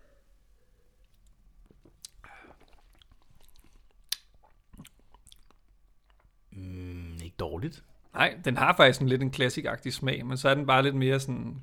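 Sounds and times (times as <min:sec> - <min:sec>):
hiss: 0:00.0 - 0:11.6
chewing while tasting food: 0:01.0 - 0:06.4
speech: 0:07.4 - 0:11.6.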